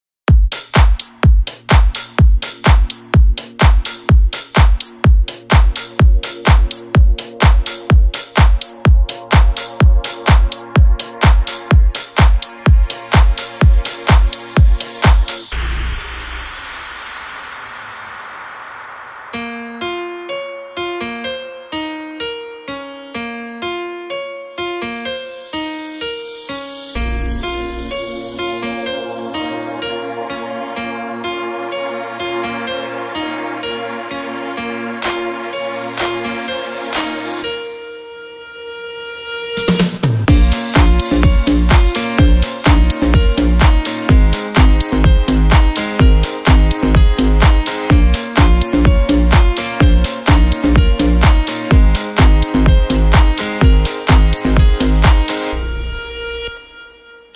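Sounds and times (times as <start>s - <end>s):
remix drum intro: 0.3s - 18.1s, 39.6s - 55.5s.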